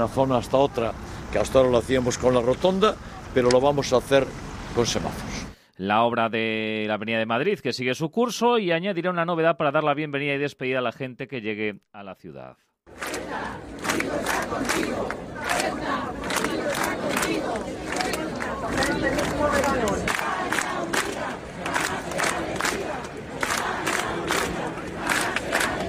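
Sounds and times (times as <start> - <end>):
speech: 0.0 - 20.6
crowd of hundreds chanting at a protest in Plaza del Rey: 12.9 - 25.8
protesters shouting: 13.0 - 25.8.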